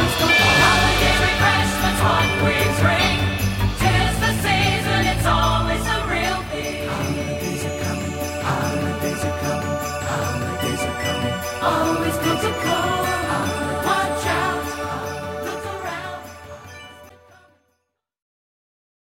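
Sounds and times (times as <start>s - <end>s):
Christmas tune: 0.0s - 17.8s.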